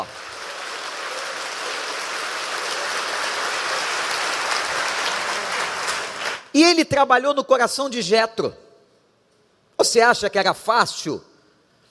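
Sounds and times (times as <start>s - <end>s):
audience applauding and cheering: 0.0s - 6.5s
speech: 6.6s - 8.6s, 9.8s - 11.3s.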